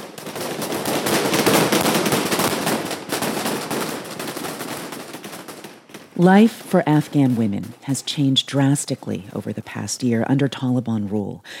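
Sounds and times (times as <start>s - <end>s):
Taliban security forces firing guns above protesters: 0.0s - 8.2s
speech: 6.2s - 11.5s.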